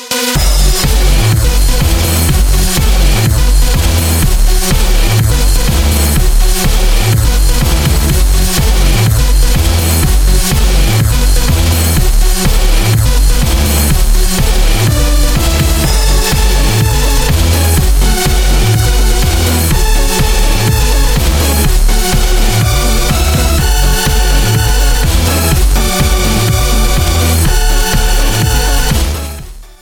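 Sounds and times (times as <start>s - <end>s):
distorted blast: 0.3s - 29.8s.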